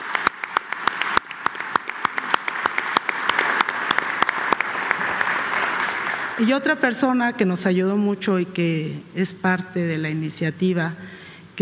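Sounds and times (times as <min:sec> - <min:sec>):
audience applause: 0:00.0 - 0:06.4
speech: 0:06.4 - 0:11.6.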